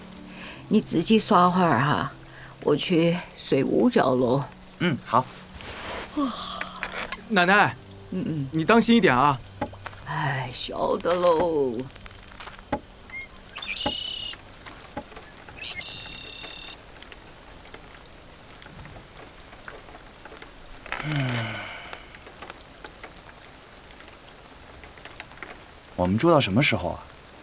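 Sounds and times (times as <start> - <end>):
sharp drips: 0.0 - 5.5, 6.6 - 27.4
steady rain pattering: 0.0 - 27.4
speech: 0.7 - 5.4, 6.2 - 6.5, 7.3 - 9.5, 10.1 - 12.0, 26.1 - 27.2
chirpy falling calls: 12.8 - 16.9.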